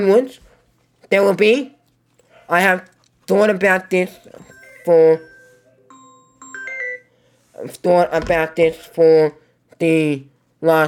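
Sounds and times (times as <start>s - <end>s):
speech: 0.0s - 0.4s, 1.1s - 1.8s, 2.5s - 5.3s, 7.6s - 10.8s
mobile phone ringtone: 4.3s - 7.3s.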